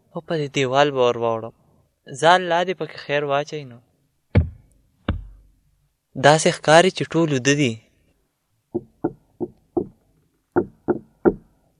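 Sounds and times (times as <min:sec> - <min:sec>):
speech: 0:00.2 - 0:03.9, 0:06.2 - 0:07.8, 0:08.7 - 0:08.9
knocking on a door: 0:04.4 - 0:05.5, 0:08.8 - 0:10.0, 0:10.6 - 0:11.5.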